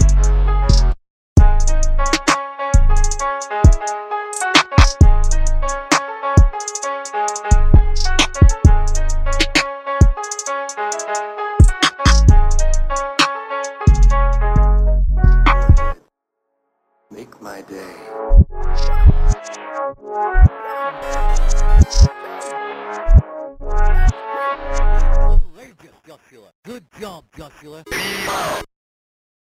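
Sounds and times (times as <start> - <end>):
instrumental music: 0.0 - 16.0, 18.0 - 25.5.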